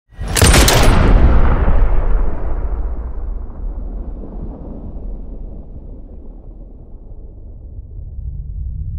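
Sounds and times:
dramatic gunshot: 0.2 - 6.6.

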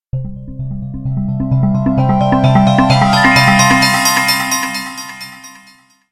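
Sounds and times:
slot machine arpeggio: 1.3 - 5.9.

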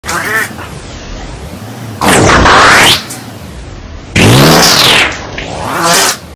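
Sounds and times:
fart: 2.0 - 3.0, 4.2 - 6.2.

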